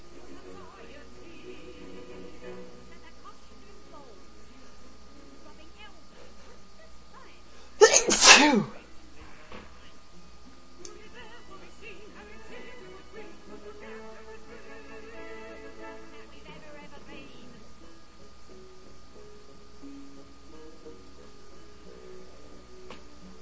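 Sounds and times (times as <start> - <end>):
music: 0.0 - 23.3
man sneezing: 7.8 - 8.8.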